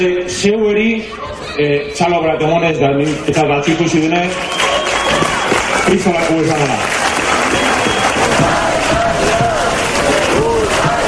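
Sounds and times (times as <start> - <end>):
speech: 0.0 - 4.7, 5.8 - 9.6
sports fans chanting: 7.1 - 11.0.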